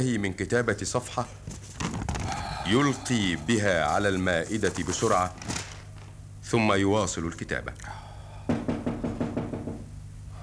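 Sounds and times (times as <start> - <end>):
speech: 0.0 - 1.6, 2.7 - 5.5, 6.5 - 8.0
knocking on a door in a stage play: 8.5 - 10.0.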